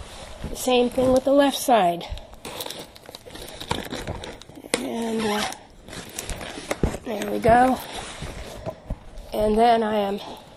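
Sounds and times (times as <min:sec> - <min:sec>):
speech: 0:00.6 - 0:02.2, 0:04.8 - 0:05.6, 0:07.1 - 0:07.9, 0:09.3 - 0:10.4
packing tape being cut with a small tool on a cardboard package: 0:02.4 - 0:07.4.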